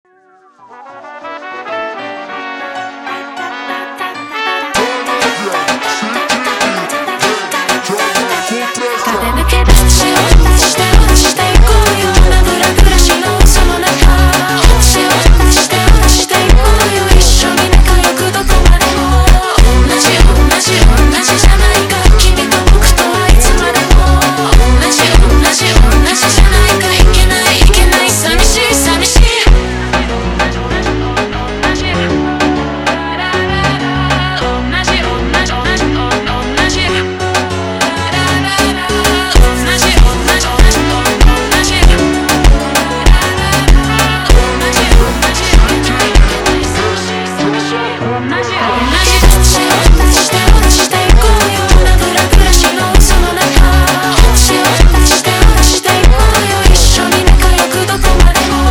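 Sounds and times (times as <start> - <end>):
slowed funk music: 4.8 - 58.6.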